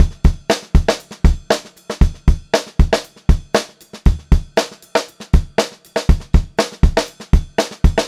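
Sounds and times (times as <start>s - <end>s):
pop-rock drum loop at 118 BPM: 0.0s - 8.0s.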